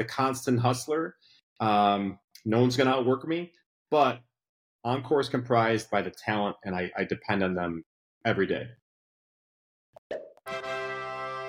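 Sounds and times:
speech: 0.0s - 8.8s
cork popping out of a bottle: 10.0s - 10.4s.

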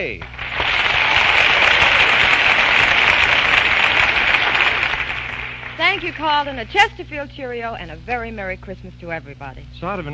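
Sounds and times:
speech: 0.0s - 0.4s, 5.8s - 10.1s
crowd applause and cheering: 0.2s - 7.0s.

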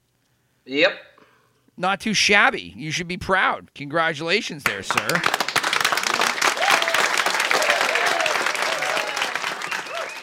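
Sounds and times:
speech: 0.7s - 1.1s, 1.8s - 5.4s
crowd applause: 4.6s - 10.2s.

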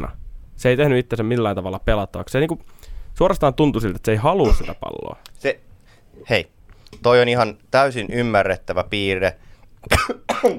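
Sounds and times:
speech: 0.0s - 10.5s
person coughing after water went down wrong: 4.4s - 4.9s, 9.8s - 10.5s.

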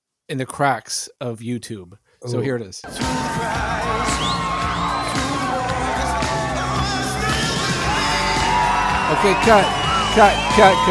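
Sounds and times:
speech: 0.3s - 5.3s, 9.2s - 10.9s
crowd roaring and cheering at rock concert: 2.9s - 10.9s.

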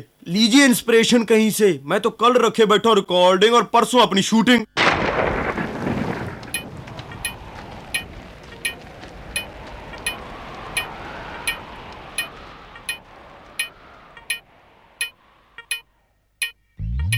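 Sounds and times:
speech: 0.0s - 4.8s
rain falling: 4.8s - 15.8s
thunder rumbling: 4.8s - 15.8s
sharp evenly spaced ticks: 12.9s - 17.1s.

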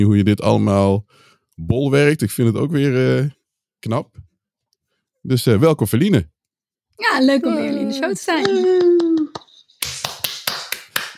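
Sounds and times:
speech: 0.0s - 4.3s, 5.2s - 6.3s, 7.0s - 9.3s
hand clapping: 8.4s - 11.1s.

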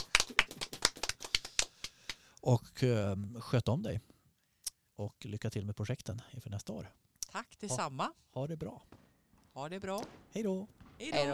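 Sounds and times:
applause: 0.0s - 2.2s
speech: 2.4s - 4.1s, 5.0s - 9.0s, 9.6s - 11.3s.

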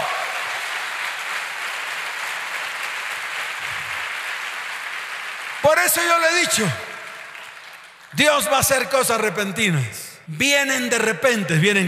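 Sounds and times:
audience applause: 0.0s - 8.2s
speech: 5.7s - 6.9s, 8.2s - 11.8s.

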